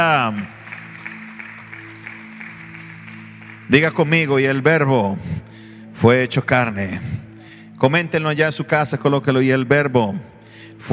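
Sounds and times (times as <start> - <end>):
speech: 0.0 - 0.6, 3.7 - 7.2, 7.8 - 10.9
audience applause: 0.0 - 4.6.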